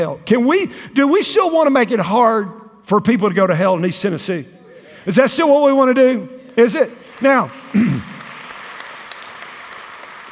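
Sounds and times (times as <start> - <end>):
speech: 0.0 - 8.1
congregation clapping during a church sermon in East Tennessee: 6.7 - 10.3.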